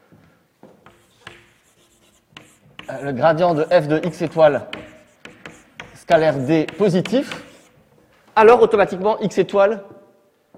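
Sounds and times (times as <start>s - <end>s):
writing on a board during a French mathematics lecture: 0.8s - 7.9s
speech: 2.9s - 4.8s, 6.1s - 7.4s, 8.4s - 10.0s.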